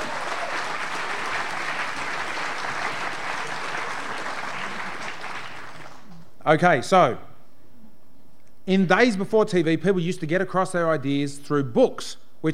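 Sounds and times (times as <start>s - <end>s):
audience applause welcoming guests at a Sydney University gathering: 0.0s - 6.2s
speech: 6.4s - 7.3s, 8.7s - 12.5s.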